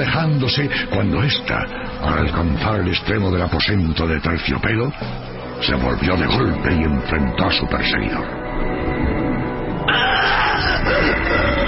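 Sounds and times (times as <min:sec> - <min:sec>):
speech: 0:00.0 - 0:08.7
sharp scream: 0:09.9 - 0:11.6.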